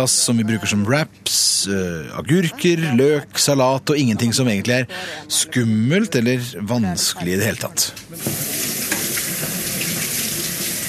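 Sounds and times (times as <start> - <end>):
speech: 0.0 - 8.7
kitchen tap water splashing into a sink: 8.2 - 10.8.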